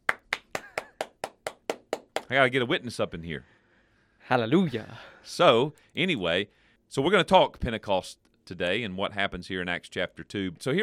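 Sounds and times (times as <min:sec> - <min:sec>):
church clap: 0:00.0 - 0:02.3
speech: 0:02.3 - 0:03.6, 0:04.3 - 0:10.8.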